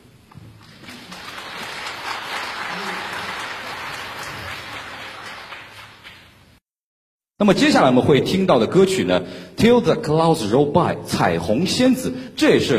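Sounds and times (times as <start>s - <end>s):
audience applause welcoming performers onto a concert stage: 0.6s - 6.3s
speech: 7.4s - 12.7s.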